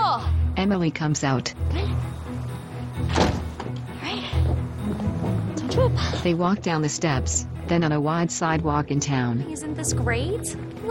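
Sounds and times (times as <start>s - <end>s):
speech: 0.6s - 2.2s, 5.8s - 10.9s
front door opening and shutting: 2.2s - 6.3s.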